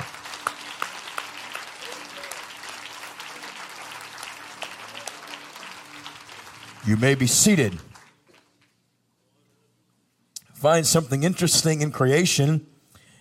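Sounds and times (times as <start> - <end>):
audience clapping hands: 0.0 - 8.8
speech: 6.8 - 7.9, 10.6 - 12.7.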